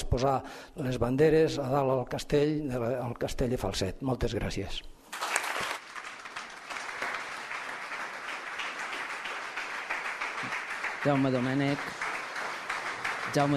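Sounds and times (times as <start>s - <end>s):
speech: 0.1s - 5.3s, 11.0s - 12.0s, 13.3s - 13.5s
audience applause in a council chamber: 5.1s - 13.5s.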